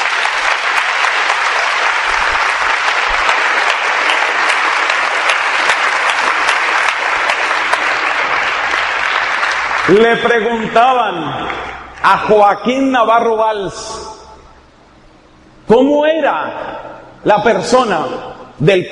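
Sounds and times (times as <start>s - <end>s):
large audience applause: 0.0s - 12.0s
speech: 9.9s - 14.0s, 15.7s - 18.9s.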